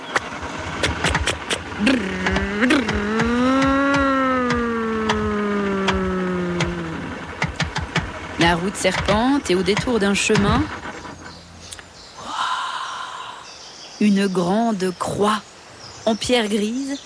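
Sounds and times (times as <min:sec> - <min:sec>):
sharp clicks: 0:00.0 - 0:11.9
car engine starting and driving off: 0:00.0 - 0:12.2
speech: 0:01.8 - 0:02.7, 0:08.7 - 0:10.8, 0:14.0 - 0:17.0.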